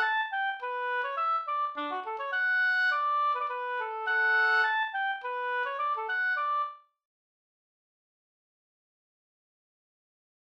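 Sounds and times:
Scanian folk march tune: 0.0s - 6.8s.

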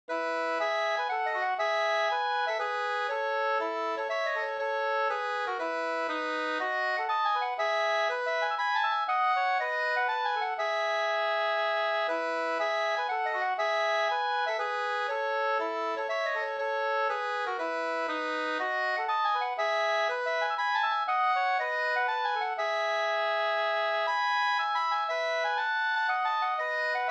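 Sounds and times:
polska folk dance tune: 0.1s - 27.1s.

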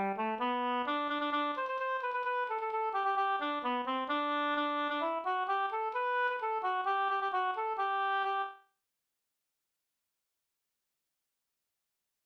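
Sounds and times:
music in G major: 0.0s - 8.6s.

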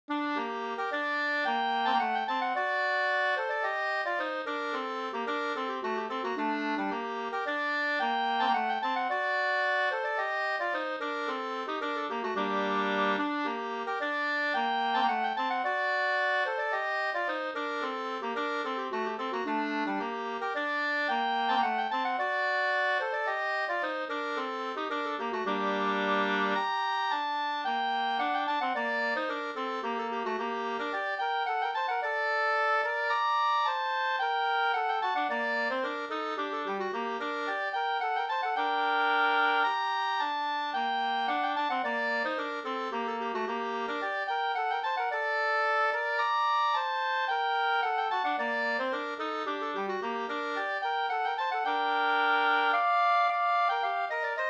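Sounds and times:
polska folk dance tune: 0.1s - 54.4s.

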